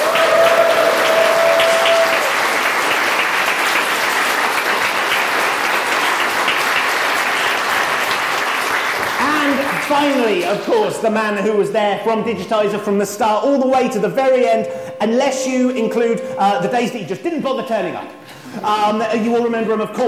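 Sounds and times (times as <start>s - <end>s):
audience applause: 0.0s - 10.7s
speech: 10.0s - 20.0s.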